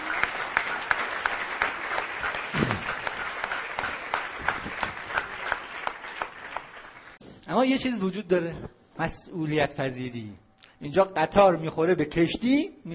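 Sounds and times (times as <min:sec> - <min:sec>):
audience applause: 0:00.0 - 0:07.2
speech: 0:07.5 - 0:12.9.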